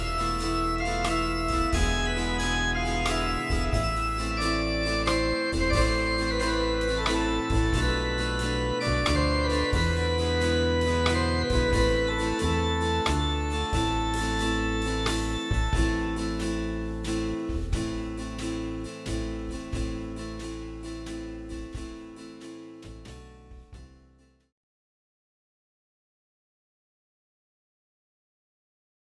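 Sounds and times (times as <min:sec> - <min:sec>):
virginal: 0:00.0 - 0:22.2
guitar: 0:00.0 - 0:24.4.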